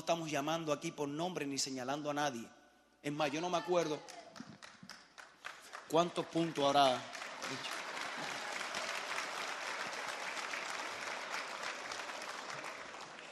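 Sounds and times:
speech: 0.1s - 4.5s, 5.9s - 7.8s
audience applause: 4.3s - 13.2s.

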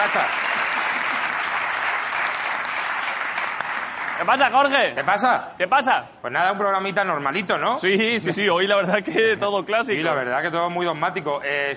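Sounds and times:
audience applause: 0.0s - 4.8s
speech: 0.1s - 0.8s, 4.2s - 11.7s.

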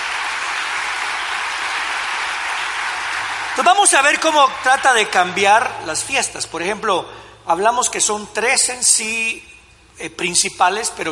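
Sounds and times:
crowd applauding: 0.0s - 5.7s
speech: 3.6s - 11.1s.

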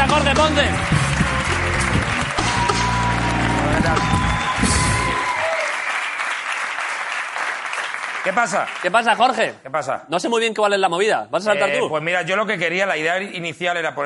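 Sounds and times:
audience applause: 0.0s - 9.4s
speech: 8.2s - 14.0s.

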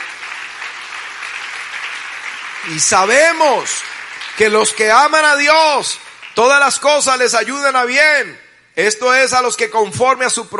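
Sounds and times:
audience applause: 0.0s - 6.6s
speech: 2.6s - 10.5s.

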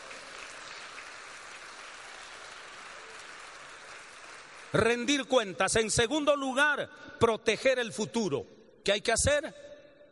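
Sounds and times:
crowd clapping: 0.0s - 5.5s
speech: 4.7s - 9.6s.

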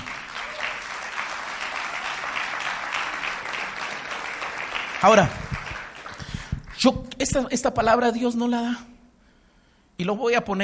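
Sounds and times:
audience applause: 0.0s - 6.8s
speech: 5.0s - 5.4s, 6.8s - 8.9s, 10.0s - 10.6s.

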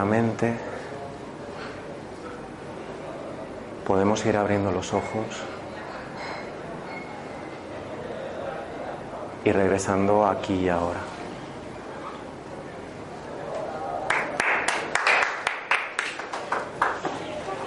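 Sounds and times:
speech: 0.0s - 0.8s, 3.9s - 5.6s, 9.4s - 11.1s
applause: 14.0s - 17.5s.

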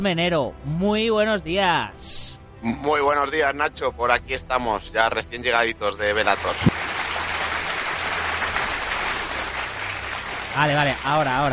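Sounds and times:
speech: 0.0s - 6.8s, 10.6s - 11.5s
audience applause: 6.2s - 11.5s.

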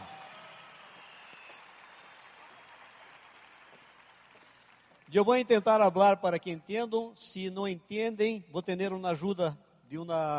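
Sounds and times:
audience applause: 0.0s - 5.2s
speech: 5.1s - 10.3s.

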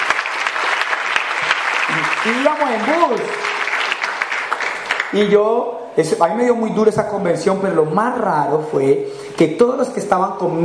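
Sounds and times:
audience applause: 0.0s - 5.3s
speech: 1.9s - 3.6s, 5.1s - 10.6s.

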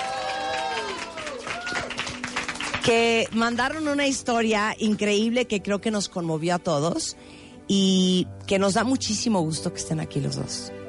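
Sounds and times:
cheering and whooping: 0.0s - 2.0s
audience applause: 0.0s - 3.1s
speech: 2.8s - 10.8s.

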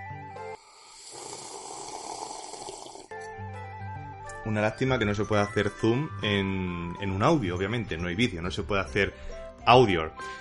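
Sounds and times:
person sipping hot mint tea into a live microphone: 0.4s - 3.3s
speech: 4.4s - 10.4s.

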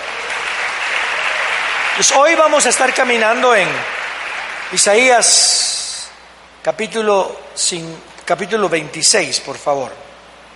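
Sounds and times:
audience applause: 0.0s - 5.7s
speech: 2.0s - 4.0s, 4.7s - 5.7s, 6.6s - 10.1s.

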